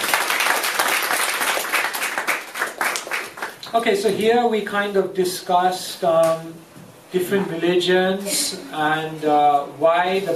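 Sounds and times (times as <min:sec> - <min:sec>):
audience applause: 0:00.0 - 0:03.6
speech: 0:03.7 - 0:10.3.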